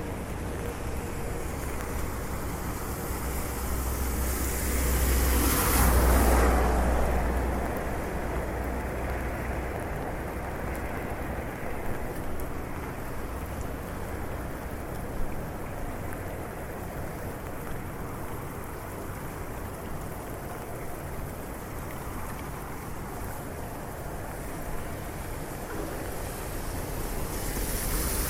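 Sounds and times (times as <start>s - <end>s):
steady rain pattering over a wet street: 0.0s - 28.2s.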